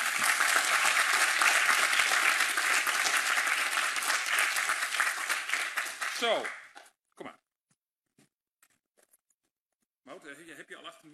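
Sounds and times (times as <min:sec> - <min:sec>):
loud applause: 0:00.0 - 0:06.7
speech: 0:06.2 - 0:06.6.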